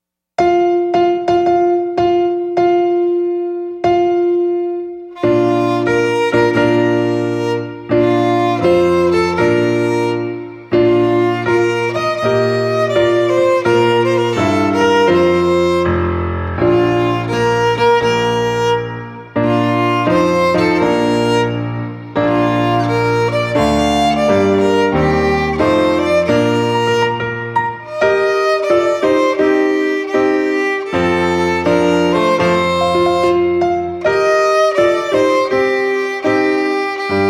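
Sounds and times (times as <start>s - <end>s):
music piece: 0.4s - 37.2s.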